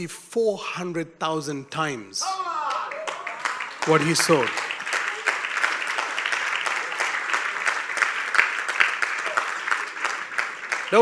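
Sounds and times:
speech: 0.0 - 2.5, 3.9 - 4.7
crowd clapping: 2.6 - 11.0.

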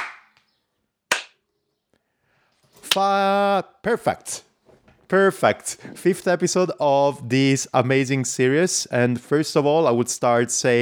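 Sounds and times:
single hand clap for sync: 0.0 - 0.5, 1.1 - 1.4
speech: 2.9 - 4.5, 5.1 - 10.7.

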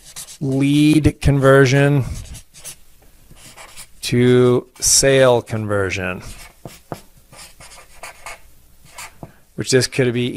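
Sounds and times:
handwriting with a pen: 0.0 - 0.5, 2.1 - 2.8, 3.4 - 3.9, 6.2 - 9.2
speech: 0.4 - 2.2, 4.1 - 6.8, 9.6 - 10.3.

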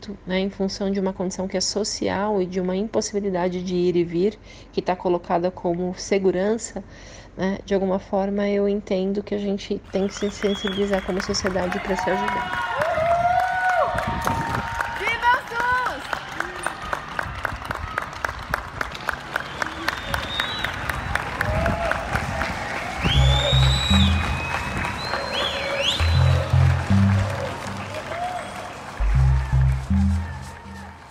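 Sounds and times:
speech: 0.0 - 12.8
whistles: 9.9 - 11.3, 19.3 - 21.1, 23.0 - 29.0
cheers: 9.9 - 31.0
scattered applause from many people outdoors: 9.9 - 31.0.

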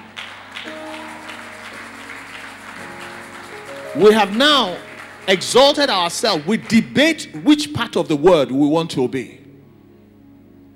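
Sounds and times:
audience clapping: 0.0 - 8.1
speech: 3.9 - 9.4.

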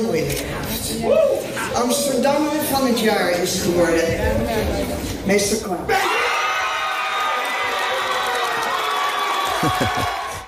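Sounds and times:
speech: 0.0 - 6.1, 9.6 - 10.2
audience cheering in a hall: 6.0 - 10.4
laughter: 9.4 - 10.4.

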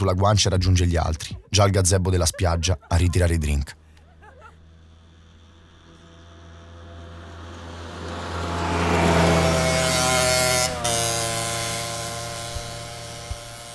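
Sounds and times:
speech: 0.0 - 3.8
laughter: 0.7 - 4.8
two modified scooters roaring: 2.8 - 13.7.

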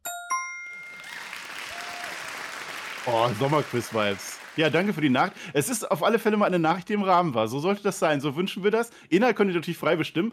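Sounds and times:
clapping: 0.8 - 5.4
speech: 3.0 - 10.3.

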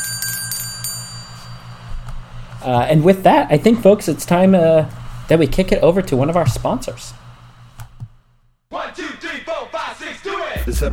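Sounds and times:
book bell ringing: 0.0 - 1.8
speech: 2.6 - 7.2, 10.6 - 10.9.

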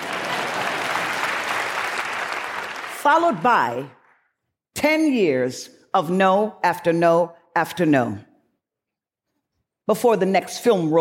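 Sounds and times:
audience applause for an actress's first film role: 0.0 - 3.1
speech: 3.0 - 4.0, 4.8 - 8.3, 9.9 - 10.9.

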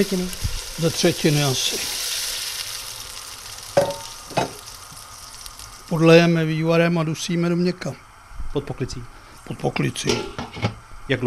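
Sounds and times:
speech: 0.0 - 2.0, 5.9 - 11.2
sharp crackling bursts: 0.0 - 6.7
meat browning, sizzling in a hot pan: 0.0 - 11.1.

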